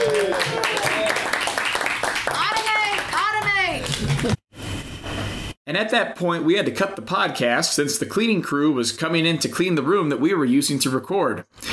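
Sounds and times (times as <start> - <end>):
applause: 0.0 - 4.4
speech: 5.7 - 11.7.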